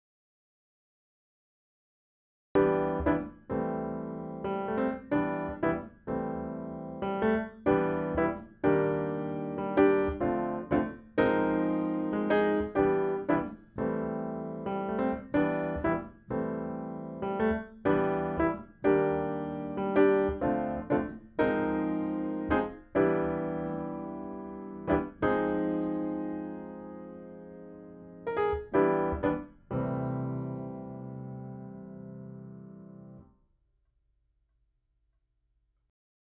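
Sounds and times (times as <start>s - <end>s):
piano: 2.6s - 33.4s.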